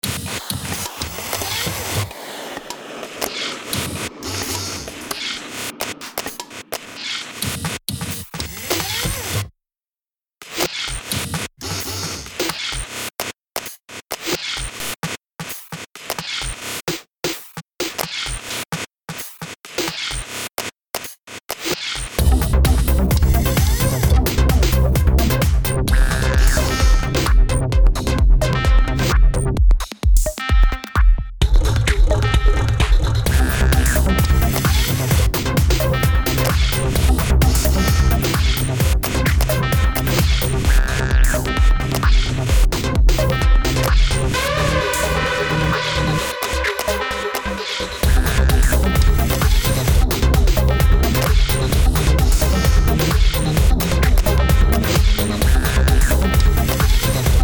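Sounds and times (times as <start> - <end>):
progressive electro tech music: 0.1 - 7.4, 22.2 - 57.4.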